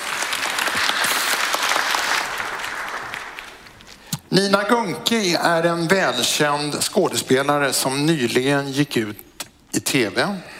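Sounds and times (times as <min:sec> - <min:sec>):
audience applause: 0:00.0 - 0:03.9
speech: 0:04.3 - 0:10.5.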